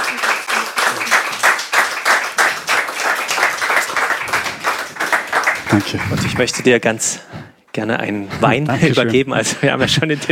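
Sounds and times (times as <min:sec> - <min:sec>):
audience applause: 0:00.0 - 0:06.9
speech: 0:05.7 - 0:10.2.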